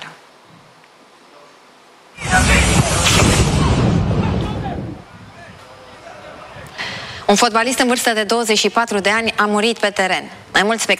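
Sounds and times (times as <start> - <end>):
lightning strike hitting a football pitch: 2.2 - 5.1
speech: 7.3 - 10.9.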